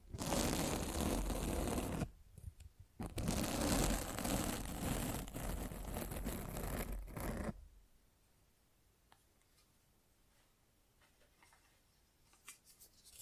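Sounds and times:
microphone scratching: 0:00.0 - 0:02.1, 0:03.0 - 0:07.6.

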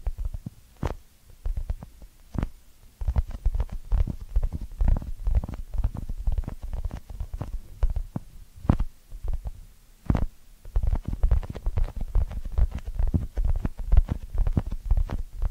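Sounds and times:
crackling and rubbing with clicks: 0:00.0 - 0:15.5
ear cleaning scratching: 0:02.4 - 0:08.0, 0:10.1 - 0:15.5.

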